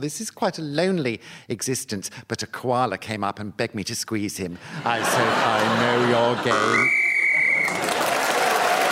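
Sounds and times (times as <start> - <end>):
speech: 0.0 - 7.0
laughter: 4.6 - 8.8
whistle ending the round: 6.7 - 7.8.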